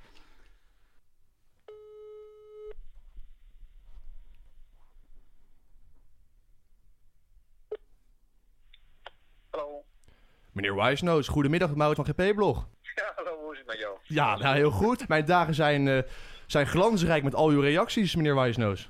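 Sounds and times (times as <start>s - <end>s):
telephone ringing tone: 1.7s - 2.8s
speech: 10.6s - 12.8s, 14.1s - 18.8s.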